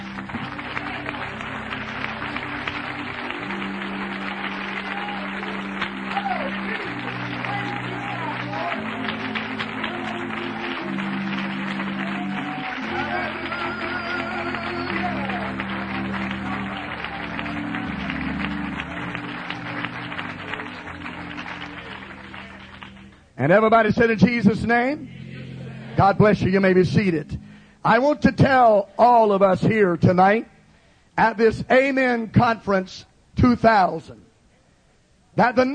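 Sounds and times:
audience clapping hands: 0:00.0 - 0:23.4
speech: 0:23.4 - 0:25.1, 0:26.0 - 0:30.5, 0:31.2 - 0:34.3, 0:35.4 - 0:35.7.

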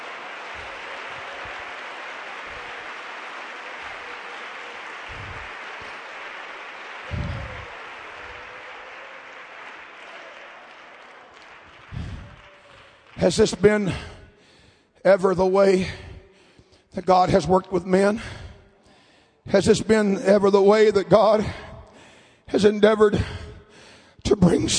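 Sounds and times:
audience clapping hands: 0:00.0 - 0:14.5
speech: 0:13.2 - 0:14.1, 0:15.0 - 0:16.0, 0:17.0 - 0:18.4, 0:19.4 - 0:21.6, 0:22.5 - 0:23.4, 0:24.4 - 0:24.7.

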